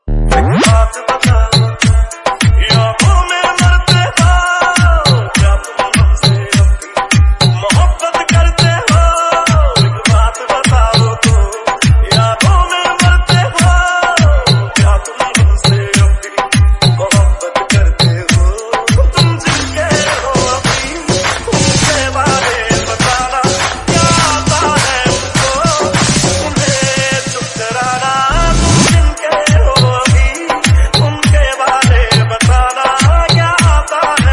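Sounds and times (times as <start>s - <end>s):
remix version ringtone music: 0.0s - 34.3s.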